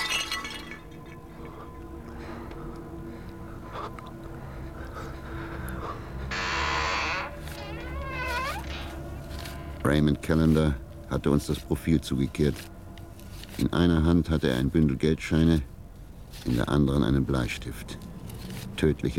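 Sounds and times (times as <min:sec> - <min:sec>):
glass pane in a front door smashing: 0:00.0 - 0:01.2
low rumble: 0:00.0 - 0:19.1
speech: 0:09.9 - 0:12.7, 0:13.6 - 0:15.7, 0:16.3 - 0:18.1, 0:18.8 - 0:19.1.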